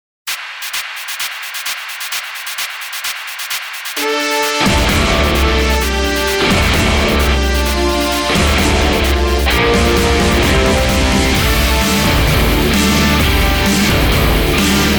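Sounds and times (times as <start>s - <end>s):
rock music: 4.0s - 14.9s.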